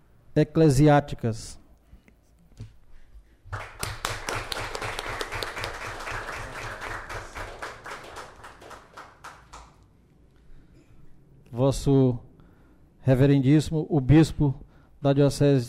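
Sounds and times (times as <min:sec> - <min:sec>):
speech: 0:00.4 - 0:01.6, 0:11.6 - 0:12.3, 0:13.0 - 0:15.6
audience applause: 0:03.5 - 0:09.8.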